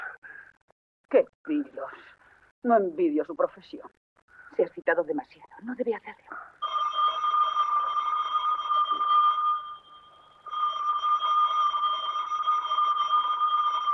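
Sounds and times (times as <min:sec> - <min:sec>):
speech: 0:01.1 - 0:04.0, 0:04.6 - 0:06.6
electric bell ringing as stage entrance call: 0:06.6 - 0:13.9.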